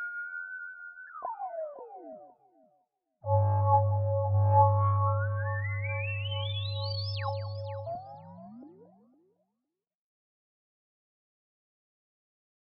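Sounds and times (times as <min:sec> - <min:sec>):
Skyloop synth: 0:03.3 - 0:08.1.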